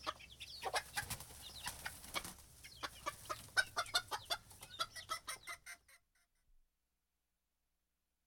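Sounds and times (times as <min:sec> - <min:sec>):
chickens clucking: 0:00.0 - 0:06.3.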